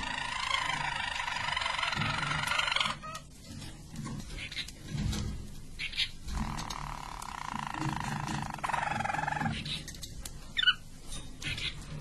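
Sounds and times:
Harz Roller canary rolling trill: 0.0 - 11.9
faint clicks and rustles: 3.1 - 11.9.

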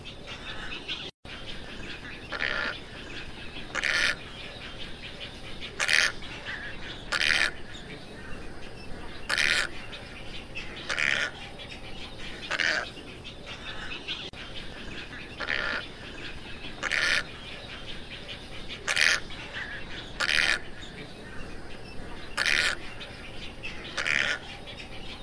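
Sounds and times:
tricolored heron squawks: 2.0 - 8.3, 9.1 - 10.0, 10.6 - 11.6, 12.2 - 21.4, 22.0 - 24.9.

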